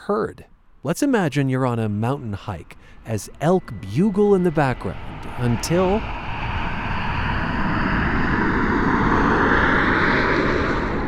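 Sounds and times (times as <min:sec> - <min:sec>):
speech: 0:00.1 - 0:06.2
vehicle passing by: 0:02.6 - 0:11.0.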